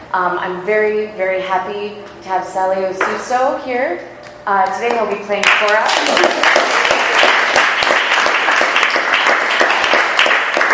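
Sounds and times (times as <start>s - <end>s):
speech: 0.1s - 6.7s
audience applause: 5.4s - 10.7s.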